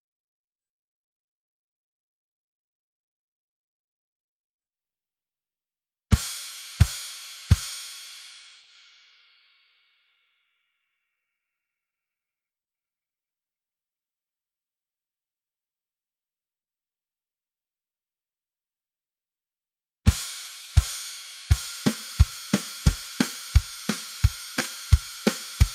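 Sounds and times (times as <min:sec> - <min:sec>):
drums: 0:06.1 - 0:09.7, 0:20.1 - 0:25.7.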